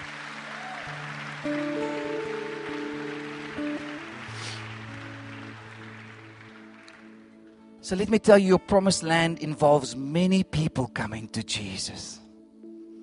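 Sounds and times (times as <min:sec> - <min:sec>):
audience clapping: 0:00.0 - 0:07.8
sustained keyboard chords: 0:00.0 - 0:09.8
speech: 0:01.4 - 0:01.7, 0:07.9 - 0:12.2.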